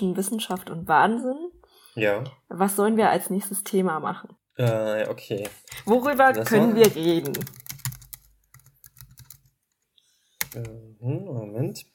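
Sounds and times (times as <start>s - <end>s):
speech: 0.0s - 7.6s, 10.6s - 11.9s
typing on a computer keyboard: 5.4s - 9.6s, 10.4s - 10.8s.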